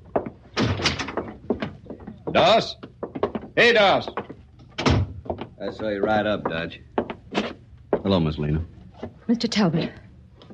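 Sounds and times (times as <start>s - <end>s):
heavy wooden thuds and clatter: 0.1s - 3.6s, 4.2s - 5.6s
sharp knocks: 0.1s - 8.1s
door opening and closing: 0.5s - 1.8s, 4.7s - 5.4s
speech: 2.3s - 2.9s, 3.6s - 4.2s, 5.6s - 6.9s, 8.1s - 8.7s, 9.3s - 10.0s.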